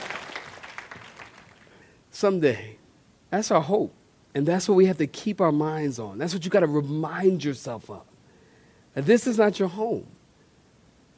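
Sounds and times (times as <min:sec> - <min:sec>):
audience clapping hands: 0:00.0 - 0:01.8
speech: 0:02.2 - 0:08.1, 0:09.0 - 0:10.2.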